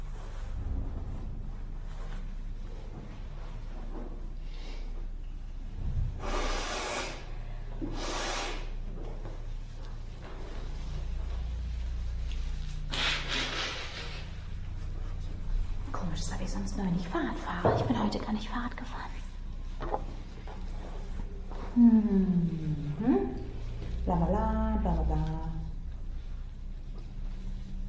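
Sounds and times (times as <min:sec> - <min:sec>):
low rumbling background: 0:00.0 - 0:07.8, 0:08.5 - 0:27.8
nose blowing: 0:06.2 - 0:08.8, 0:12.9 - 0:14.3
speech: 0:16.2 - 0:19.1.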